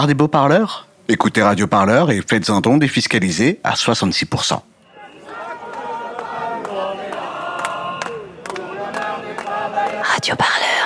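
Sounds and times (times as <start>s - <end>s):
speech: 0.0s - 4.7s, 10.2s - 10.8s
protest crowd chanting in Paris: 4.8s - 10.5s.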